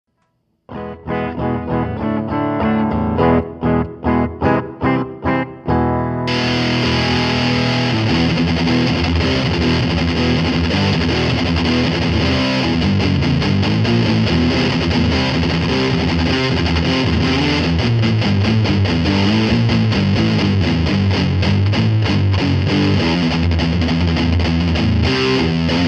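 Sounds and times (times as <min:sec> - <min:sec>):
heavy guitar pedal tone: 0:00.2 - 0:25.8.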